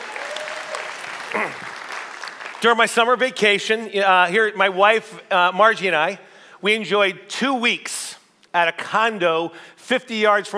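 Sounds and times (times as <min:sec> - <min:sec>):
audience applause: 0:00.0 - 0:02.7
speech: 0:01.3 - 0:01.7, 0:02.6 - 0:10.5.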